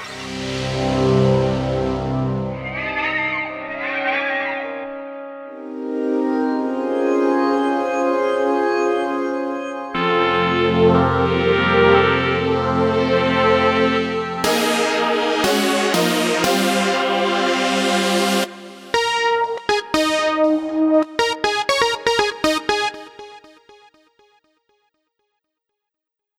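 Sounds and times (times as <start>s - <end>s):
synth pad: 0.0s - 3.6s, 5.5s - 23.9s.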